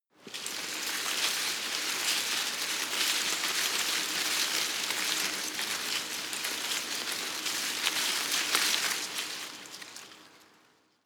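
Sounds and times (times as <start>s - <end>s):
small tree leaves rustling medium: 0.2s - 10.9s.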